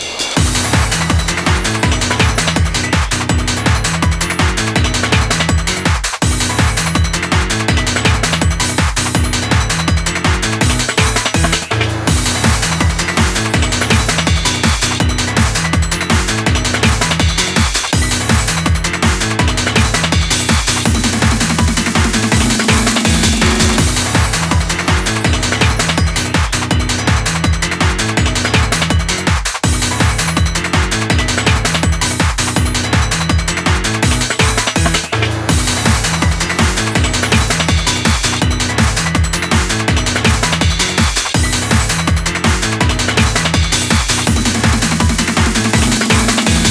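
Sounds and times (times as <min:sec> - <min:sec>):
login background music: 0:00.0 - 0:46.6.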